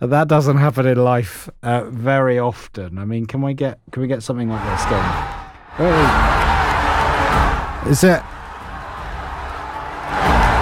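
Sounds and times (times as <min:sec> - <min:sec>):
speech: 0:00.0 - 0:06.5, 0:07.8 - 0:08.3
crowd cheering: 0:04.5 - 0:10.6
high shouts: 0:04.5 - 0:10.6.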